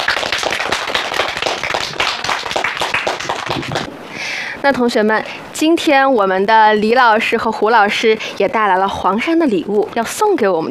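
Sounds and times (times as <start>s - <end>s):
room of students applauding: 0.0s - 3.9s
speech: 4.6s - 10.6s.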